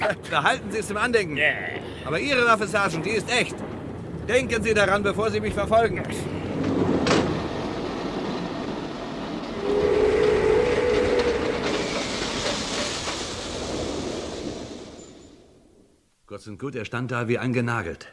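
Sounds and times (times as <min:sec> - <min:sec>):
speech: 0:00.1 - 0:03.7, 0:04.3 - 0:06.4, 0:16.4 - 0:18.1
train running on rails: 0:02.2 - 0:15.6.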